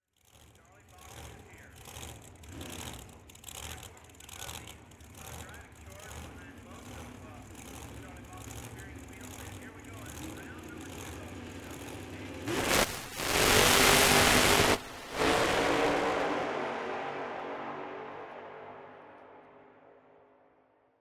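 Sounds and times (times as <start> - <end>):
dragster engine starting: 0.2 - 16.3.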